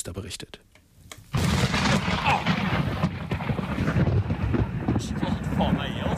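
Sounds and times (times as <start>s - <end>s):
lightning strike thunderclap recorded on phone: 1.3s - 6.1s
wind buffeting the microphone: 1.4s - 6.1s.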